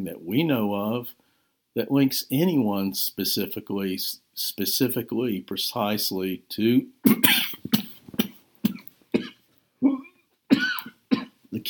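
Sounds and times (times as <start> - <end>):
speech: 0.0 - 7.4
person with a recurring cough coughing: 7.0 - 11.4.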